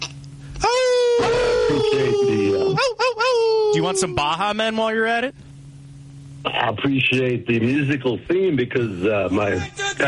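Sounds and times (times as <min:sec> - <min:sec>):
person imitating a wolf howl: 0:00.6 - 0:04.4
speech: 0:01.7 - 0:03.0, 0:03.8 - 0:05.5, 0:06.4 - 0:10.0.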